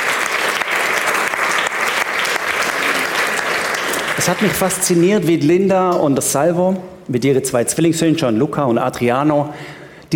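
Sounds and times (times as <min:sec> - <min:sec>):
audience applause: 0:00.0 - 0:04.8
speech: 0:04.2 - 0:10.1.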